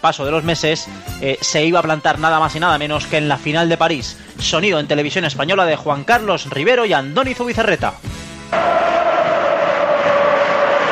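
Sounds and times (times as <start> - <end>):
speech: 0.0 - 8.8
football crowd cheering at Mestalla stadium: 8.5 - 10.9.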